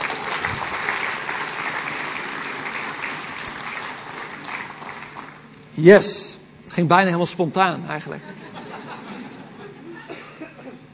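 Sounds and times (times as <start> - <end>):
thunderous audience applause: 0.0 - 5.5
speech: 5.8 - 6.2, 6.8 - 8.6
laughter: 8.1 - 10.9.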